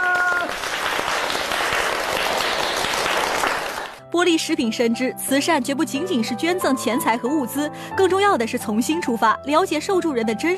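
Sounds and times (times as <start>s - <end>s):
audience applause: 0.0s - 4.0s
speech: 4.2s - 10.5s.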